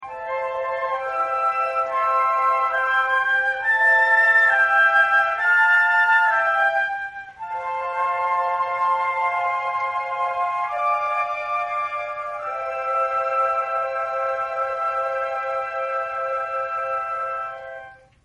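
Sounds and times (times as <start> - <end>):
flute in concert: 0.0 - 18.2.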